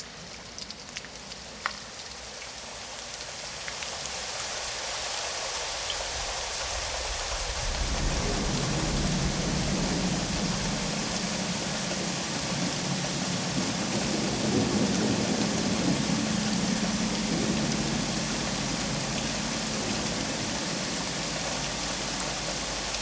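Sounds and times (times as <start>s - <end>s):
light and heavy rain: 0.0s - 22.9s
thunder: 6.0s - 20.8s.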